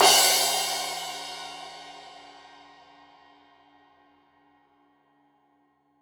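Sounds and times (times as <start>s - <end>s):
15 inch crash cymbal edge hit: 0.0s - 2.7s.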